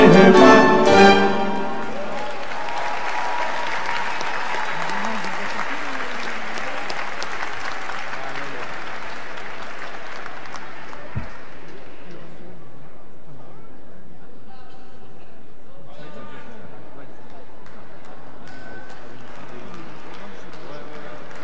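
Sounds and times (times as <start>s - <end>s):
speech: 0.2s - 1.2s
audience applause for a singer at a live Jewish unity concert: 1.5s - 12.0s, 18.9s - 21.4s.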